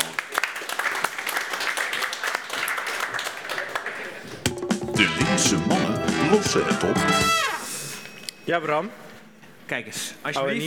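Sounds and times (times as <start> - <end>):
audience applause: 0.0 - 7.5
speech: 5.4 - 7.5, 8.5 - 9.1, 9.7 - 10.6.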